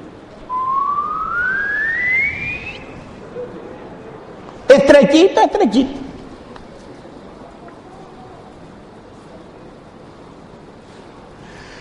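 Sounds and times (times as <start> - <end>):
whistling: 0.5 - 3.1
speech: 4.9 - 6.0.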